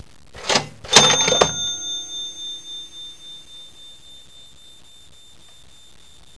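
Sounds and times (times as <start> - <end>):
business-style ringtone: 0.8 - 5.8.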